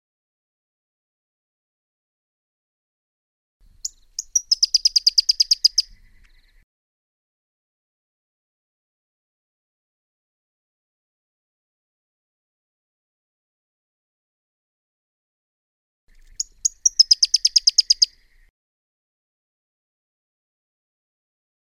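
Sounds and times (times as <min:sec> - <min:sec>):
Pyrrhuloxia giving a rapid chattering series of crisp high chip notes: 0:03.9 - 0:05.8, 0:16.3 - 0:18.1.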